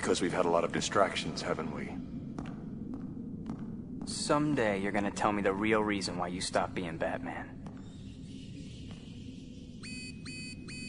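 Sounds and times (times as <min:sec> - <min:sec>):
speech: 0:00.0 - 0:02.2, 0:04.1 - 0:07.6
steady low rumble: 0:00.0 - 0:10.8
electronic alarm system alert: 0:09.6 - 0:10.8.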